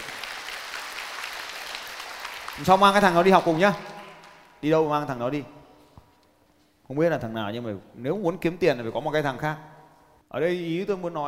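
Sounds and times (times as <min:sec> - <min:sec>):
audience applause: 0:00.0 - 0:04.6
speech: 0:02.6 - 0:03.9, 0:04.6 - 0:05.6, 0:06.9 - 0:09.7, 0:10.3 - 0:11.2.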